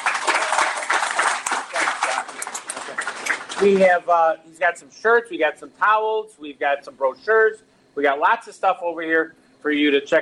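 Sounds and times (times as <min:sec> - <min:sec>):
crowd applauding: 0:00.0 - 0:03.9
speech: 0:03.6 - 0:10.2.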